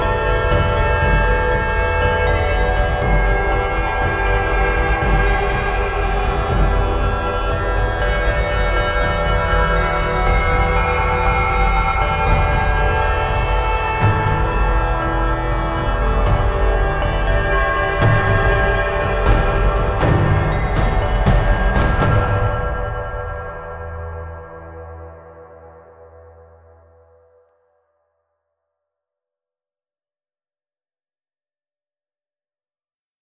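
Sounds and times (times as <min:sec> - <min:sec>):
epic intense modern big percussion: 0:00.0 - 0:25.9.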